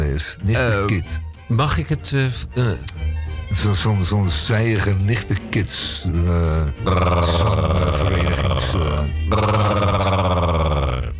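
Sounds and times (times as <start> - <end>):
speech: 0.2 - 10.6
person growling: 6.1 - 11.1.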